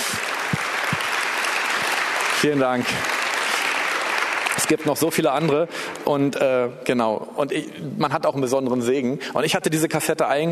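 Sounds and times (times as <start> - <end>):
audience applause: 0.0 - 5.5
speech: 2.4 - 3.2, 4.6 - 10.5.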